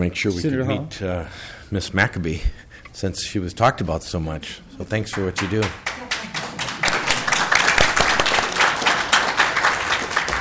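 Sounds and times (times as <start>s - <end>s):
speech: 0.0s - 6.0s
crowd applauding in a senate hearing room: 5.1s - 10.3s.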